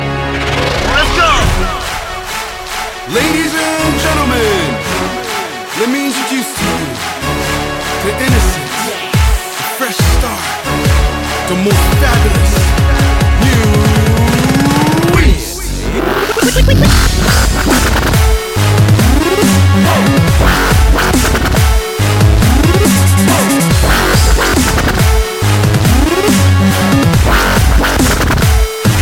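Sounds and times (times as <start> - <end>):
dubstep music: 0.0 - 29.0.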